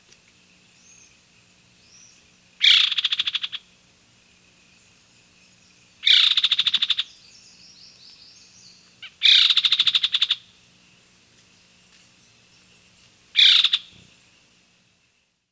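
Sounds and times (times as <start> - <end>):
Masked Trogon calling in Ecuador: 2.6 - 3.7, 6.0 - 7.2, 9.0 - 10.5, 13.4 - 14.0.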